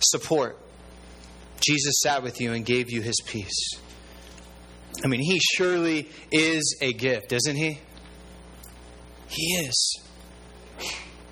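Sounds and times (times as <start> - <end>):
speech: 0.1 - 0.7, 1.6 - 4.0, 5.0 - 7.9, 9.3 - 10.1
sneeze: 10.8 - 11.2.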